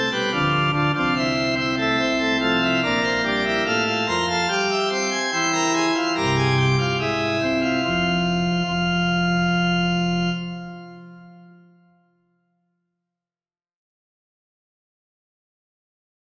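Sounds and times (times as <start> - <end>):
two-part invention on organ: 0.0 - 12.1.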